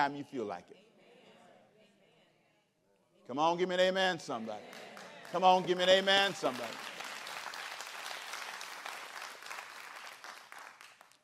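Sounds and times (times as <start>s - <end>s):
speech: 0.0s - 0.9s, 3.3s - 6.9s
a few people clapping: 4.2s - 11.2s.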